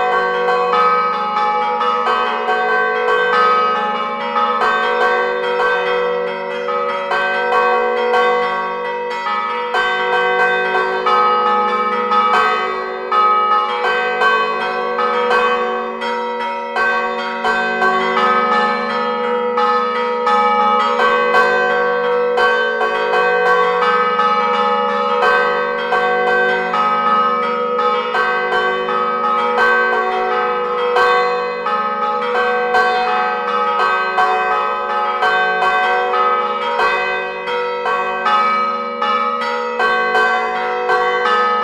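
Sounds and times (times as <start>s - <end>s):
church bells ringing at Rezzo Sanctuary in Imperia Liguria: 0.0s - 41.6s.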